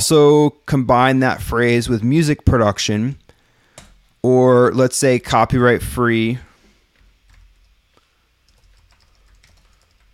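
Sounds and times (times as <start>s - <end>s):
speech: 0.0s - 3.2s, 4.2s - 6.5s
steady noise: 0.0s - 10.1s
rapid typing on a computer keyboard: 8.5s - 10.1s.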